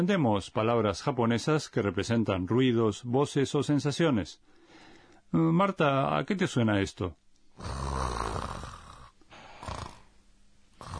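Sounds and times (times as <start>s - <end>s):
speech: 0.0s - 4.6s, 5.3s - 7.8s
person snoring: 7.6s - 10.2s, 10.8s - 10.9s.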